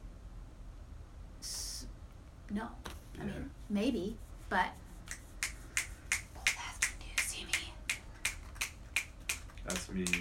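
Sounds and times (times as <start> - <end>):
speech: 2.5 - 4.8, 9.7 - 10.1
finger snapping as applause: 5.1 - 10.1.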